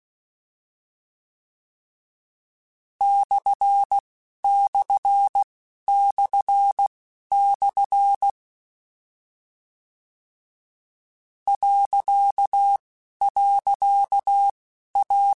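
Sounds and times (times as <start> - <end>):
Morse code CW code groups: 3.0 - 8.3, 11.5 - 15.3.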